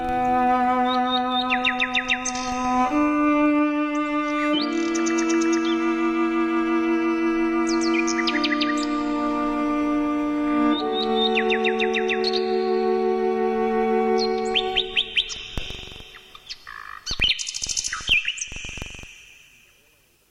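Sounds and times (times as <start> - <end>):
low bowed cello notes: 0.0 - 16.0
nightingale singing: 0.0 - 19.9.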